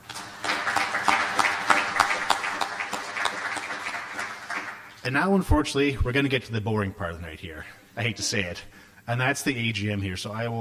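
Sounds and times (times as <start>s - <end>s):
audience applause: 0.0s - 5.0s
speech: 5.1s - 10.6s.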